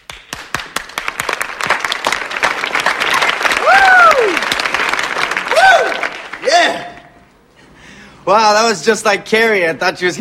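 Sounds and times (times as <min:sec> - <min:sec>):
person clapping: 0:00.0 - 0:06.4
speech: 0:08.3 - 0:10.1.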